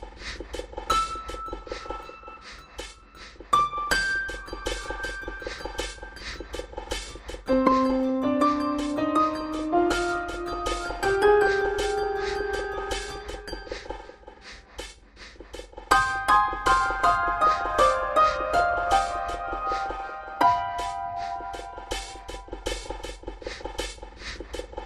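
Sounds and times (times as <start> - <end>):
piano: 0.9 - 14.9, 15.9 - 23.9.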